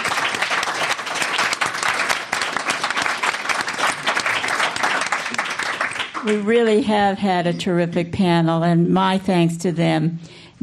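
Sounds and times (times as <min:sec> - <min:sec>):
audience applause: 0:00.0 - 0:06.4
speech: 0:06.2 - 0:10.6.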